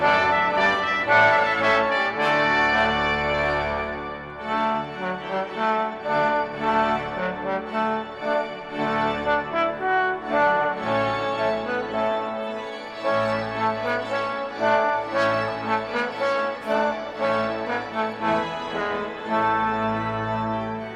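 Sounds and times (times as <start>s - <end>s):
trumpet tune: 0.0s - 20.9s.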